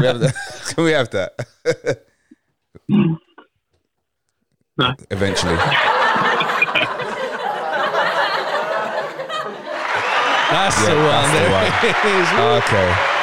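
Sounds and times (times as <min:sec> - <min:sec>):
speech: 0:00.0 - 0:02.0, 0:02.9 - 0:03.2, 0:04.8 - 0:07.1, 0:10.5 - 0:13.2
laughter: 0:00.0 - 0:02.1, 0:05.1 - 0:13.2
applause sound effect: 0:09.7 - 0:13.2.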